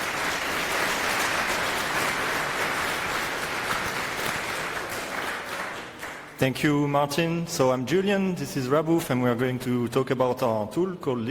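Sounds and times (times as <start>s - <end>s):
audience applause for speakers: 0.0s - 6.4s
speech: 6.4s - 11.2s.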